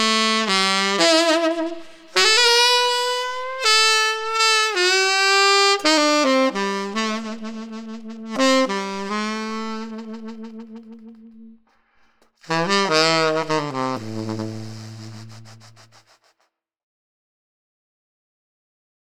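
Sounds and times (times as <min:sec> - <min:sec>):
tenor saxophone: 0:00.0 - 0:11.6, 0:12.4 - 0:16.2.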